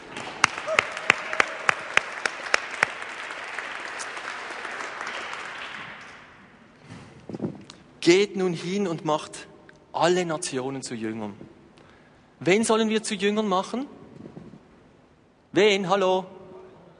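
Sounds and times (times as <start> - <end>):
audience applause: 0.0 - 6.4
speech: 8.1 - 11.5, 12.4 - 14.0, 15.6 - 16.4.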